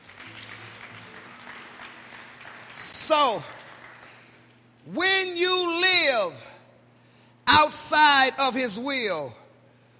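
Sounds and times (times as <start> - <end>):
congregation clapping hands during a church service: 0.0 - 4.6
speech: 3.1 - 3.6, 4.9 - 6.5, 7.6 - 9.4.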